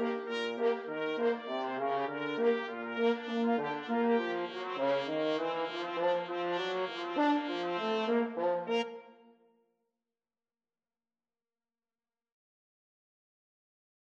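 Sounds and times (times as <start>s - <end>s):
ragtime trumpet and French horn duet: 0.0s - 9.0s.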